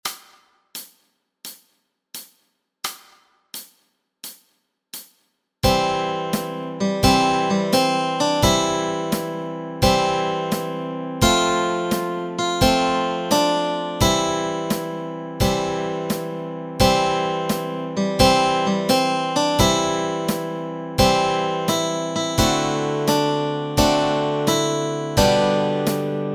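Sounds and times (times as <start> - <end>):
melody and chords: 5.6 - 26.3.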